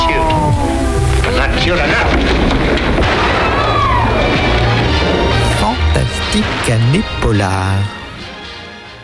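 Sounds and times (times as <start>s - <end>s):
booming rumbling effects: 0.0s - 8.1s
radio show segment jingle: 5.4s - 8.3s
speech: 6.7s - 8.0s.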